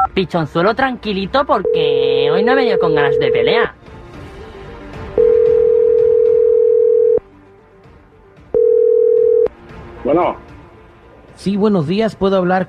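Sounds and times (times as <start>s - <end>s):
music: 0.0s - 12.6s
speech: 0.2s - 3.8s, 10.0s - 10.5s, 11.4s - 12.6s
telephone dial tone: 1.6s - 3.6s, 5.2s - 7.2s, 8.6s - 9.5s.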